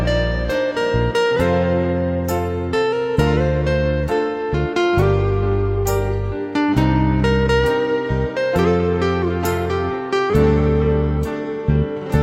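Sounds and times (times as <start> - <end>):
guitar melody: 0.0 - 12.2.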